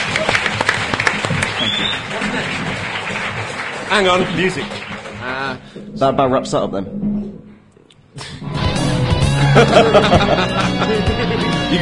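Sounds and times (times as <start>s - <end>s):
crowd applauding: 0.0s - 5.7s
speech: 3.9s - 4.8s, 5.4s - 7.1s, 9.6s - 11.8s
laughter: 9.3s - 11.8s.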